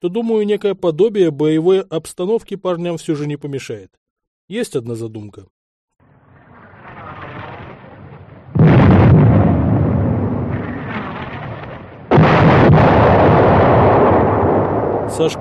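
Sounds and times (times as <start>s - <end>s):
speech: 0.0s - 5.6s, 15.2s - 15.3s
artillery gun firing shells: 6.6s - 15.2s.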